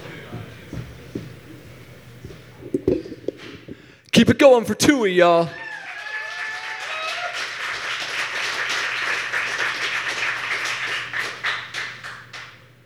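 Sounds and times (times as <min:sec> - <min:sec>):
speech: 0:04.2 - 0:05.6
audience applause: 0:05.5 - 0:12.6.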